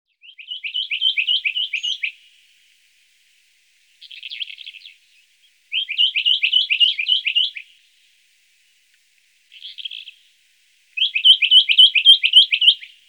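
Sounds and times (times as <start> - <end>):
Western rock nuthatch calling: 0.2 - 2.8, 3.9 - 7.9, 9.5 - 10.4, 11.0 - 13.0.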